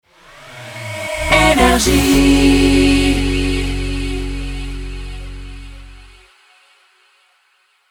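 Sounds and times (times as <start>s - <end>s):
jingle: 1.2s - 6.1s.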